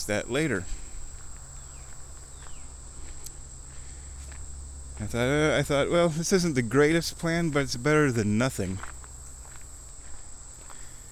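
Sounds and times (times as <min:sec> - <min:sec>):
speech: 0:00.0 - 0:00.8, 0:05.0 - 0:09.0
crickets chirping: 0:00.0 - 0:11.1
footsteps walking toward a wall blind by a billabong: 0:00.5 - 0:05.2, 0:08.6 - 0:10.9.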